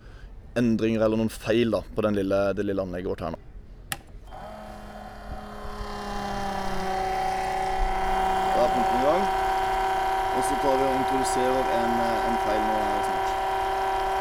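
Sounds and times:
speech: 0:00.6 - 0:03.5, 0:10.6 - 0:13.1
small Biltema electric pump running: 0:03.9 - 0:14.2.

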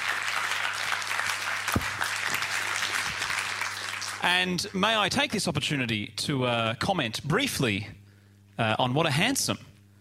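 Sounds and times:
crowd applauding: 0:00.0 - 0:04.7
speech: 0:04.2 - 0:08.0, 0:08.6 - 0:09.7.

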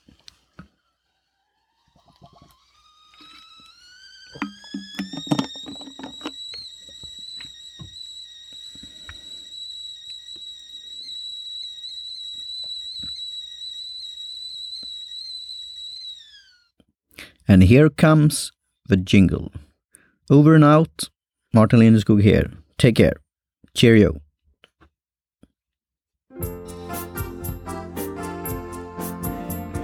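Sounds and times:
tea kettle whistling: 0:00.0 - 0:16.7
tea kettle filling: 0:04.4 - 0:07.0
speech: 0:17.5 - 0:19.6, 0:20.3 - 0:23.2, 0:23.8 - 0:24.2.

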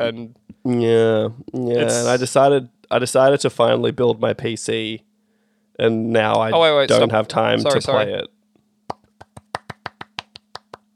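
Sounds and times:
speech: 0:00.0 - 0:05.1, 0:05.8 - 0:08.4
small round of applause: 0:08.9 - 0:10.9.

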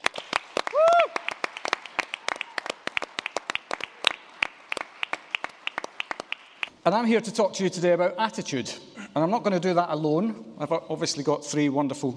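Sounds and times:
live audience round of applause: 0:00.0 - 0:06.7
speech: 0:06.8 - 0:12.1.

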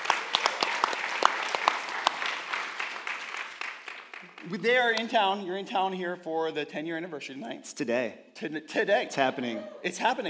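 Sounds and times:
audience applause welcoming a guest preacher at a church's 10-year anniversary service: 0:00.0 - 0:05.2
speech: 0:04.4 - 0:10.2.

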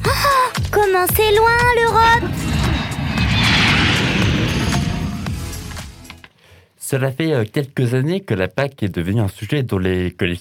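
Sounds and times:
speech: 0:00.8 - 0:02.4, 0:06.9 - 0:10.3
airplane taking off: 0:01.3 - 0:06.2.

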